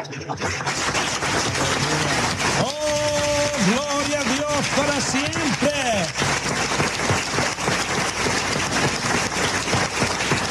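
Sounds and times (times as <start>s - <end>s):
speech: 0.0s - 1.7s, 2.6s - 3.0s, 4.8s - 6.2s
audience applause: 0.0s - 10.4s
sustained tonal voice: 1.6s - 2.3s.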